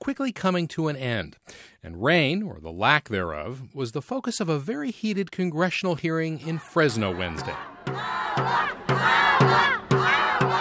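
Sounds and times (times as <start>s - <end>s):
speech: 0.0s - 9.8s
crowd of protesters chanting agua: 6.4s - 10.5s.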